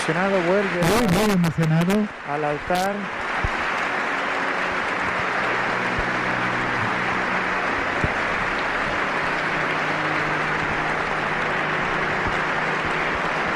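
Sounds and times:
speech: 0:00.0 - 0:03.2
applause: 0:00.0 - 0:13.5.

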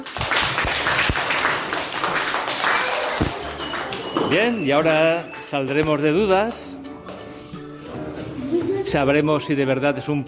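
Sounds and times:
applause from a group: 0:00.0 - 0:05.2
speech: 0:04.3 - 0:06.8, 0:08.8 - 0:10.2.

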